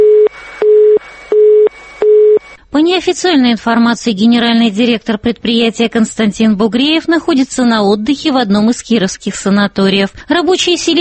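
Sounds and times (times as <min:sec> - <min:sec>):
busy tone on a factory telephone line cut off for unpaid debts: 0:00.0 - 0:02.6
speech: 0:02.8 - 0:11.0.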